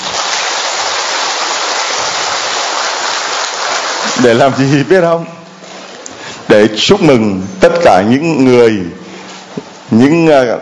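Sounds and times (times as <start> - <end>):
big round of crowd applause: 0.0 - 4.7
speech: 4.2 - 5.4, 6.5 - 9.0, 9.9 - 10.6.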